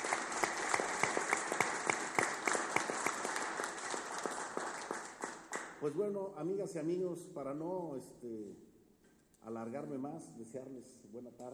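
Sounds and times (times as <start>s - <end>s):
applause: 0.0s - 6.0s
speech: 5.8s - 8.7s, 9.4s - 11.5s.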